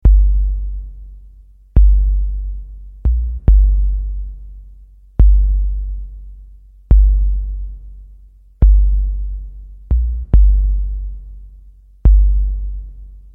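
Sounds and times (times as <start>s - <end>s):
woofer bass test tone: 0.0s - 13.3s.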